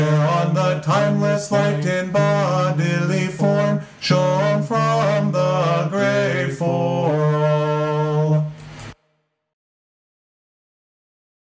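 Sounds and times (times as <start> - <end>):
ode chant: 0.0 - 8.6.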